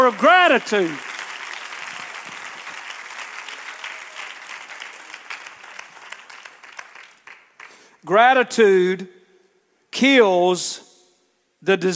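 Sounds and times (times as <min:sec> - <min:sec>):
speech: 0:00.0 - 0:01.1, 0:08.0 - 0:09.2, 0:10.0 - 0:10.9, 0:11.6 - 0:11.9
audience clapping hands: 0:00.0 - 0:08.0.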